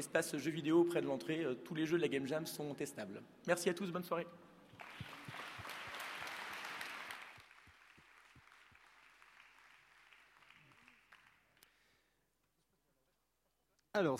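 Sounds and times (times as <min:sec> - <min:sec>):
speech: 0:00.0 - 0:04.5, 0:14.0 - 0:14.1
crowd applause: 0:04.8 - 0:11.6.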